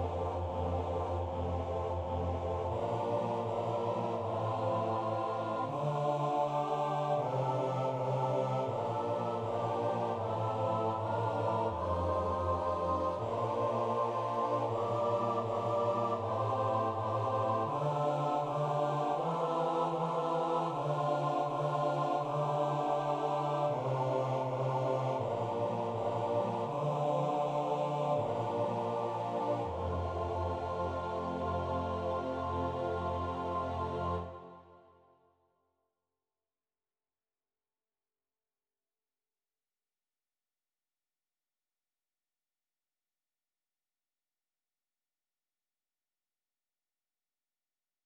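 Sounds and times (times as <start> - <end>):
bass voice singing a prayer: 0.0 - 34.4.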